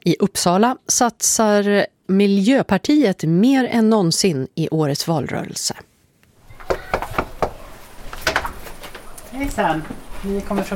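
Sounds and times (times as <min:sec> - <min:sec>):
speech: 0:00.0 - 0:05.9, 0:09.4 - 0:10.7
knocking on a front door: 0:06.6 - 0:07.6.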